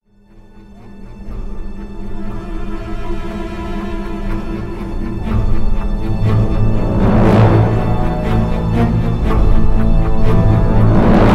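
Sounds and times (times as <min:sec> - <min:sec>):
battle intro music: 0:05.3 - 0:11.3.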